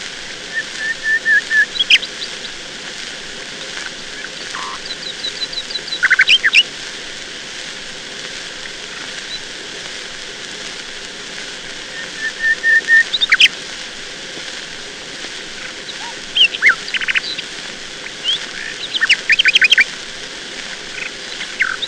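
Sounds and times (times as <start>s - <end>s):
nightingale singing: 0.5s - 2.6s, 3.6s - 6.6s, 11.9s - 13.5s, 15.6s - 19.8s, 20.9s - 21.8s.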